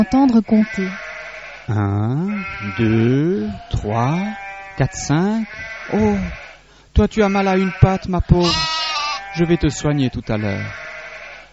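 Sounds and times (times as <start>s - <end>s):
speech: 0.0s - 1.0s, 1.7s - 8.7s, 9.4s - 10.8s
flock of sheep bleating: 0.0s - 11.5s.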